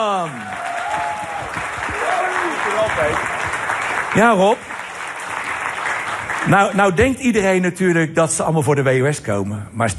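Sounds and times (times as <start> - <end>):
warm audience applause: 0.1 - 7.4
speech: 4.1 - 4.7, 6.5 - 9.9.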